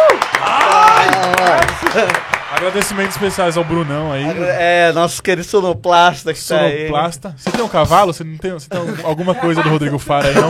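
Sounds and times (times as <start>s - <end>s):
applause, hands clapping: 0.0s - 4.5s
speech: 1.8s - 10.4s
laughter: 8.7s - 10.4s.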